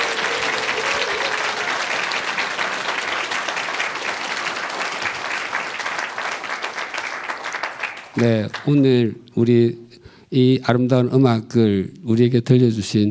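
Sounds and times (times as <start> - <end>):
audience clapping: 0.0 - 8.9
speech: 8.2 - 13.0.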